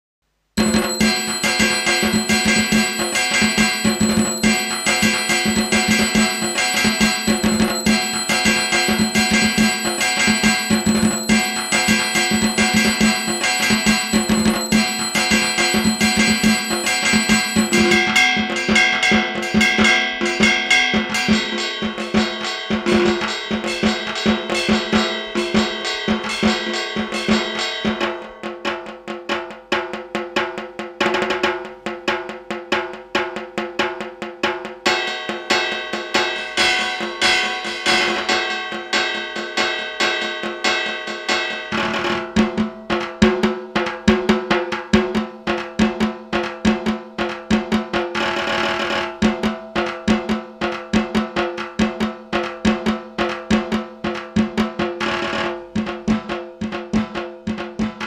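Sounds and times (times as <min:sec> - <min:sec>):
acoustic Indian dhaak drum: 0:00.6 - 0:58.0.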